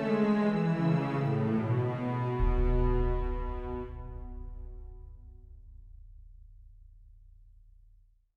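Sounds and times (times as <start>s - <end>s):
world music: 0.0s - 5.4s.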